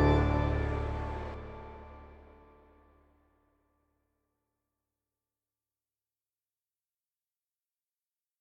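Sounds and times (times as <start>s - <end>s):
organ chorale prelude: 0.0s - 2.5s.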